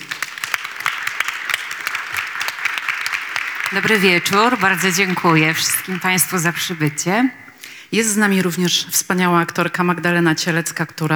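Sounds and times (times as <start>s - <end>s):
audience applause: 0.0s - 7.6s
speech: 3.7s - 11.1s.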